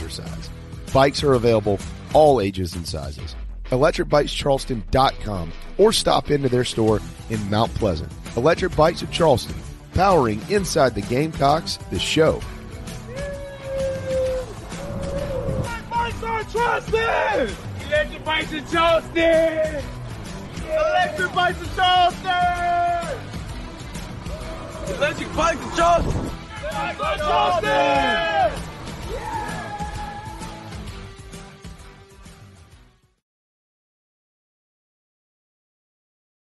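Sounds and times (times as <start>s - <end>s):
speech: 0.1s - 12.6s, 16.5s - 20.0s, 20.7s - 23.2s, 24.9s - 28.6s
frenzied stadium crowd cheering: 13.1s - 23.4s, 24.0s - 30.9s.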